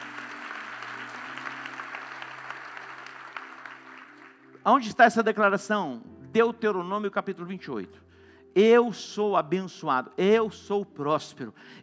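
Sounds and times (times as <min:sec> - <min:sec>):
audience applause: 0:00.0 - 0:04.6
speech: 0:04.6 - 0:11.8.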